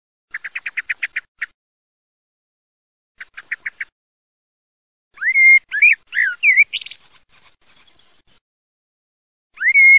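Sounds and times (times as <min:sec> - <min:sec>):
Common blackbird song: 0:00.3 - 0:01.5, 0:03.2 - 0:03.9, 0:05.1 - 0:08.4, 0:09.5 - 0:09.9.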